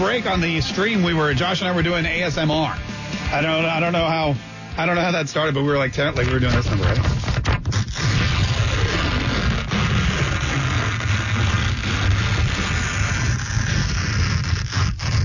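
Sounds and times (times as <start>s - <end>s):
speech: 0.1s - 7.3s
sheet of paper tearing: 6.0s - 15.2s.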